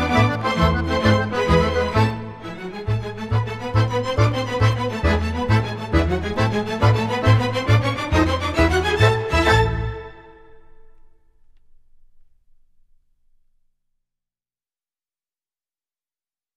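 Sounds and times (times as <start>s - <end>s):
tarantella dance music: 0.0s - 10.2s.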